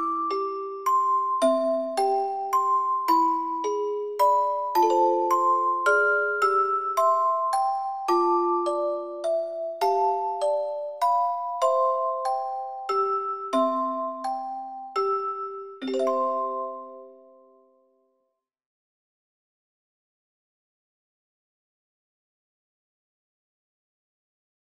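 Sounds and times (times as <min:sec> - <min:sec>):
lullaby: 0:00.0 - 0:18.4.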